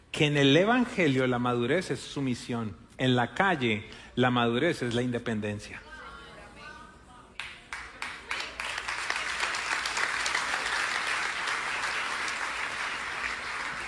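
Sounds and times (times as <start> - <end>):
speech: 0.2 - 5.9
audience applause: 7.7 - 13.8.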